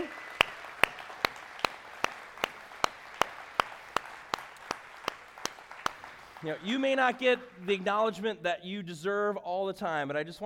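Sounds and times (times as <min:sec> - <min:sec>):
church audience applause: 0:00.0 - 0:08.2
speech: 0:06.4 - 0:10.4.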